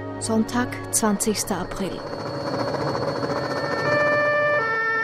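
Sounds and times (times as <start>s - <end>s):
speech: 0.2s - 2.6s
police sirens wailing in city streets: 3.6s - 5.0s.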